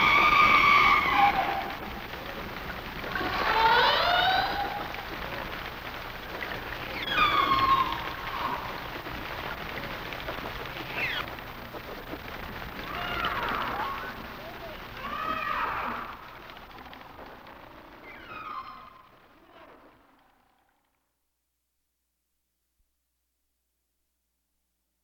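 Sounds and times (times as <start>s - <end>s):
humpback whales calling: 0.0s - 20.0s.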